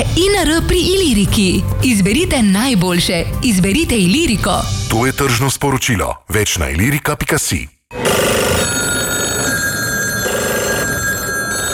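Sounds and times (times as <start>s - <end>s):
speech: 0.0s - 7.8s
telephone ringing: 7.9s - 11.7s.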